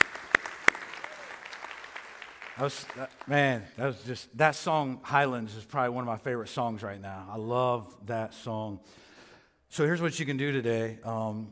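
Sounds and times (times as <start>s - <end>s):
audience clapping: 0.0s - 3.8s
speech: 2.6s - 9.1s, 9.7s - 11.5s.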